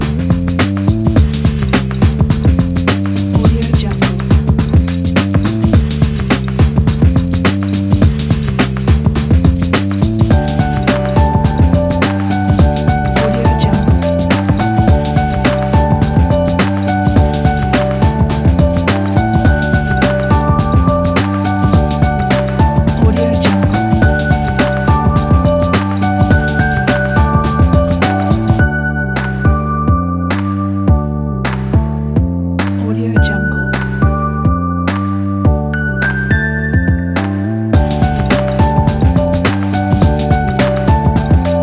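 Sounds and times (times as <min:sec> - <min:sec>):
lo-fi lounge music: 0:00.1 - 0:41.6.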